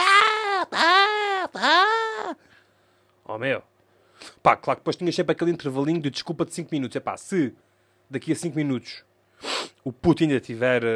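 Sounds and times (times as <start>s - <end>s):
voice imitating a child screaming and crying: 0.0s - 2.4s
speech: 3.3s - 9.1s, 9.8s - 10.9s.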